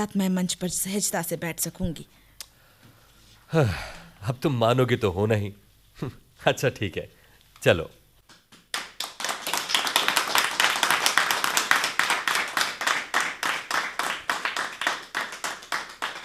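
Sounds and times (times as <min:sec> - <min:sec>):
speech: 0:00.0 - 0:02.2, 0:03.5 - 0:08.0
people clapping: 0:08.3 - 0:16.2.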